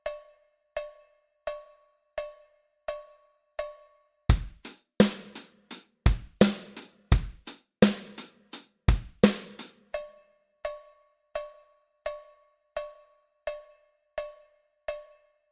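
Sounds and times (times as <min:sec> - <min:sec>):
rhythmic music: 0:04.3 - 0:09.8.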